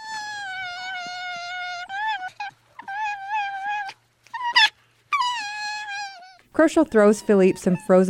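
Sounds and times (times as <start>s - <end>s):
silver fox yelps: 0.0s - 6.4s
silver fox whining wails: 0.0s - 8.0s
speech: 6.6s - 8.0s.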